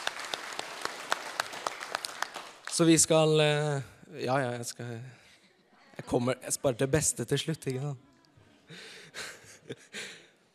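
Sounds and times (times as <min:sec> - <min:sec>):
audience applause: 0:00.0 - 0:03.1
speech: 0:02.8 - 0:05.2, 0:06.1 - 0:08.1.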